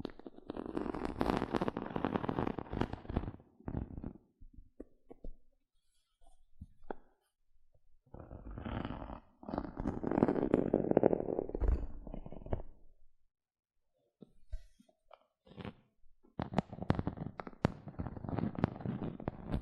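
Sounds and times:
gentle scratching: 0.0s - 4.2s, 8.2s - 12.7s, 16.4s - 19.6s.

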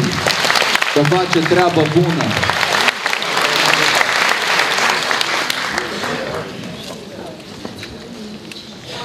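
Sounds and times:
audience applause: 0.0s - 6.9s
speech: 1.0s - 2.6s.

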